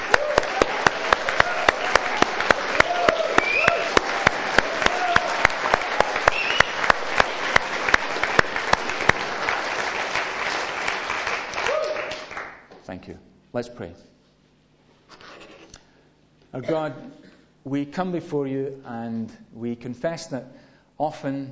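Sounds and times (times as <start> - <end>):
audience clapping: 0.0 - 12.9
speech: 13.6 - 14.2, 16.5 - 21.5.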